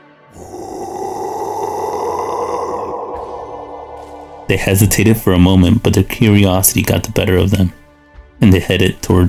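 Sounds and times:
low rough growl: 0:00.3 - 0:05.4
speech: 0:04.5 - 0:07.8, 0:08.4 - 0:09.2.

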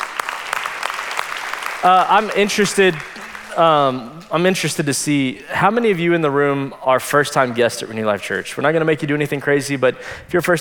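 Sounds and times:
church audience applause: 0:00.0 - 0:04.2
speech: 0:01.8 - 0:10.5.

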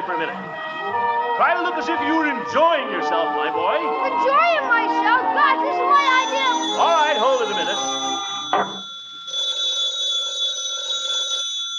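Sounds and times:
speech: 0:00.1 - 0:08.7
telephone ringing: 0:05.8 - 0:11.7.

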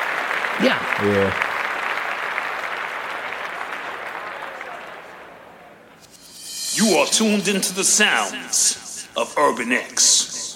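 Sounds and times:
applause: 0:00.0 - 0:05.7
speech: 0:00.6 - 0:01.5, 0:06.8 - 0:10.4.

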